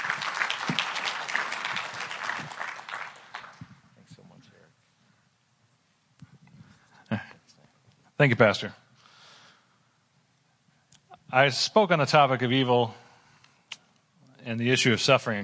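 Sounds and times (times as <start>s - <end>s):
church congregation applauding to welcome a speaker: 0.0s - 3.8s
speech: 8.2s - 8.8s, 11.3s - 13.0s, 14.5s - 15.4s.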